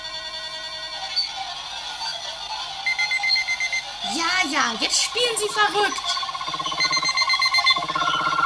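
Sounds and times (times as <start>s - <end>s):
alarm clock ringing: 0.5s - 8.4s
speech: 4.5s - 6.2s.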